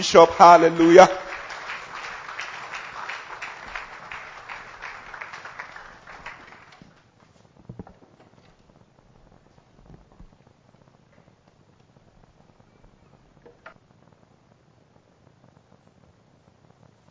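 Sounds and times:
speech: 0.0 - 1.2
audience applause: 0.0 - 7.0
soft crowd noise: 0.0 - 7.6.

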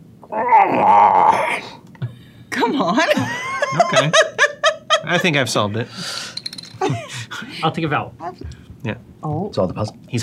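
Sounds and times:
voice imitating stomach growl: 0.2 - 1.8
speech: 0.3 - 1.8, 2.6 - 4.4, 5.1 - 7.0, 7.6 - 10.2
laughter: 3.0 - 5.4, 6.8 - 7.5.

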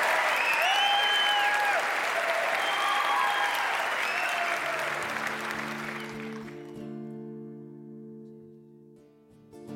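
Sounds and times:
audience applause welcoming a band on stage: 0.0 - 6.9.

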